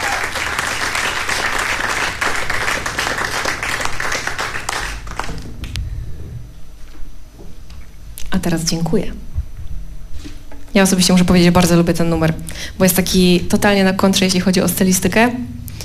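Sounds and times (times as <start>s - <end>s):
crowd applauding: 0.0s - 5.7s
speech: 8.4s - 9.3s, 10.8s - 15.6s.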